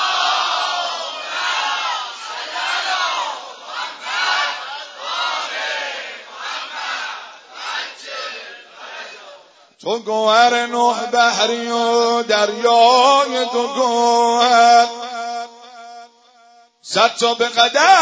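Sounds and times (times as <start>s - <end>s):
crowd chanting salawat in unison: 0.0s - 9.8s
speech: 9.8s - 15.0s, 16.9s - 18.0s.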